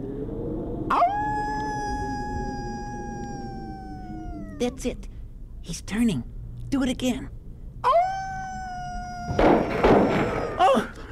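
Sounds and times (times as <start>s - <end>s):
low rumble: 0.0s - 11.1s
person imitating a wolf howl: 0.9s - 5.0s, 7.8s - 11.0s
speech: 4.6s - 8.0s.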